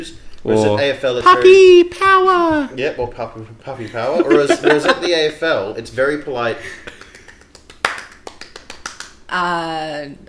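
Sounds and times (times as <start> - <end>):
speech: 0.0 - 6.9, 9.3 - 10.2
laughter: 3.8 - 5.4
hand clapping: 6.8 - 9.5.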